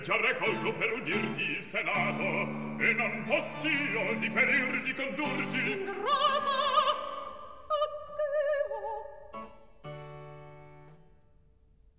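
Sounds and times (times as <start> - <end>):
recitative singing: 0.0 - 9.2.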